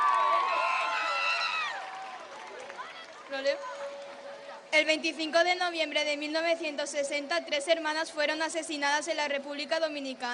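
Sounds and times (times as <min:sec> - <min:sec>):
audience applause: 0:00.0 - 0:04.4
speech: 0:03.3 - 0:04.0, 0:04.7 - 0:10.3.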